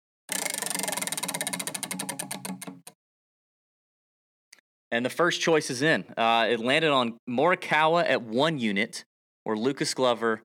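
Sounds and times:
prize wheel spinning with ratcheting clicks: 0:00.3 - 0:02.9
speech: 0:04.9 - 0:10.4.

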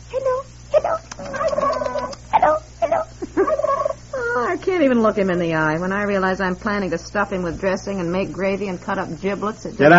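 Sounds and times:
turkey gobbling: 0:01.2 - 0:04.1
speech: 0:04.8 - 0:09.9.

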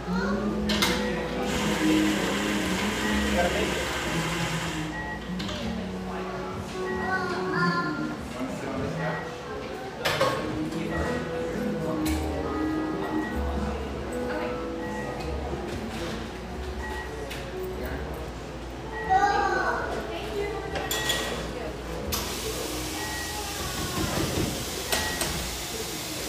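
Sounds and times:
busy cafe chatter: 0:00.0 - 0:26.2
dishes clinking and clattering: 0:20.7 - 0:21.6.

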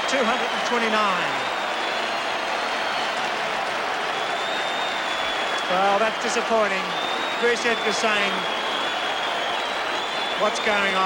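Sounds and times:
large crowd booing: 0:00.0 - 0:11.0
speech: 0:00.1 - 0:01.5, 0:05.7 - 0:08.6, 0:10.4 - 0:11.0.

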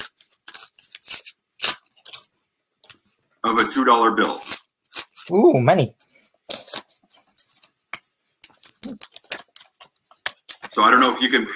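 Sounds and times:
small envelope paper crinkling and tearing: 0:00.0 - 0:02.3, 0:04.2 - 0:05.4, 0:06.5 - 0:06.9, 0:08.4 - 0:10.8
speech: 0:03.5 - 0:04.5, 0:05.3 - 0:06.0, 0:10.8 - 0:11.5.

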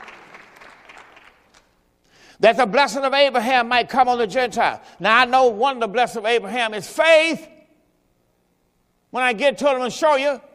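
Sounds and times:
audience applause: 0:00.0 - 0:01.7
speech: 0:02.4 - 0:07.5, 0:09.1 - 0:10.5.

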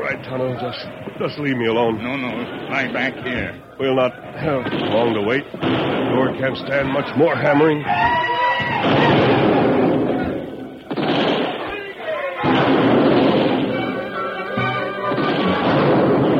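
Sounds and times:
mortar fire: 0:00.0 - 0:07.8, 0:08.6 - 0:14.0, 0:15.1 - 0:16.3
speech: 0:00.1 - 0:09.6
cannon fire: 0:02.3 - 0:03.6, 0:04.3 - 0:07.0, 0:08.7 - 0:11.8, 0:12.4 - 0:14.2, 0:15.0 - 0:16.3.

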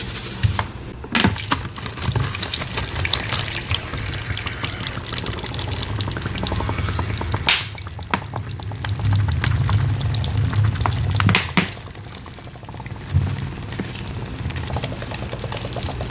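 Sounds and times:
crackling sizzle of pouring and powder play: 0:00.0 - 0:16.0
low rumbling bed: 0:02.9 - 0:13.7.

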